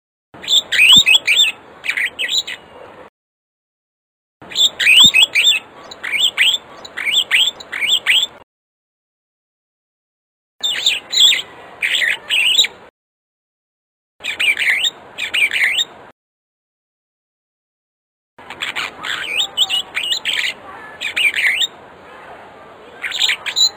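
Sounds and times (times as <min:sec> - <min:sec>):
African starling singing with whistled notes: 0:00.4 - 0:02.8, 0:04.5 - 0:08.4, 0:10.6 - 0:12.8, 0:14.2 - 0:16.0, 0:18.6 - 0:21.8, 0:23.0 - 0:23.7.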